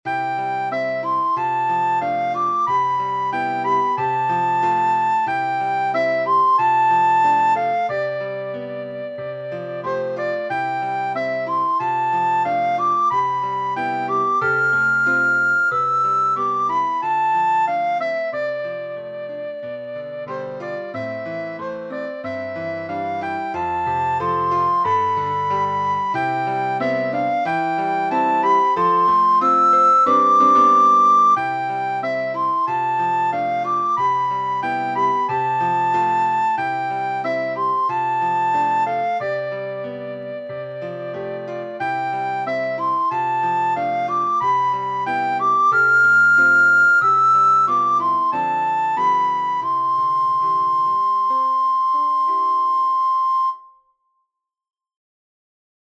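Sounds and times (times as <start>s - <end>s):
piano: 0.0s - 53.8s
recorder: 0.1s - 53.7s.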